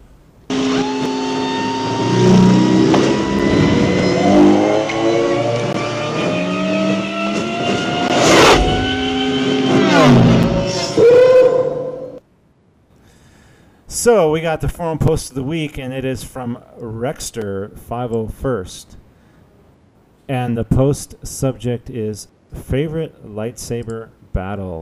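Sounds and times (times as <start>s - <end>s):
Star Wars speeder bike engine whoosh sound effect: 0.8s - 11.2s
speech: 14.0s - 19.0s, 20.3s - 24.8s.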